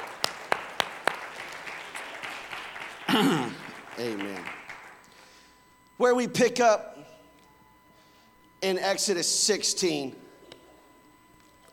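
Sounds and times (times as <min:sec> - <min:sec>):
audience hand clap: 0:00.0 - 0:05.2
speech: 0:03.2 - 0:04.6, 0:06.0 - 0:07.0, 0:08.6 - 0:10.2.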